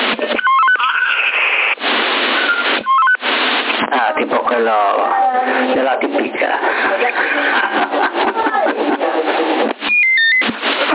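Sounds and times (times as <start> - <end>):
five-tone selective call radio identification signal: 0.2 - 1.4, 2.2 - 4.1, 9.7 - 10.8
speech: 4.6 - 5.1, 5.7 - 7.7
laughter: 6.4 - 9.7.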